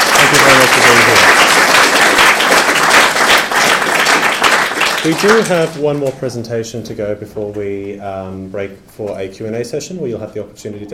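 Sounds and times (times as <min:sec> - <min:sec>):
audience applause: 0:00.0 - 0:05.8
speech: 0:05.0 - 0:10.9.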